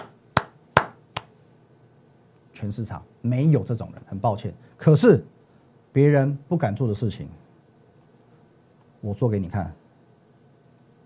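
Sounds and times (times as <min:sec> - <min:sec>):
hand clapping: 0:00.0 - 0:01.4
speech: 0:02.6 - 0:05.4, 0:06.0 - 0:07.4, 0:09.0 - 0:09.8.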